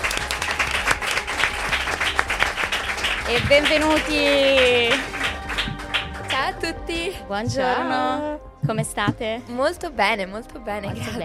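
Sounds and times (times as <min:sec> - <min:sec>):
audience applause: 0:00.0 - 0:06.6
speech: 0:03.3 - 0:05.2, 0:06.4 - 0:11.2.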